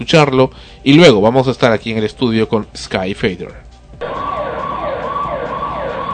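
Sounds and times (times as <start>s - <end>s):
speech: 0.0s - 4.3s
house burglar alarm sounding: 4.0s - 6.1s.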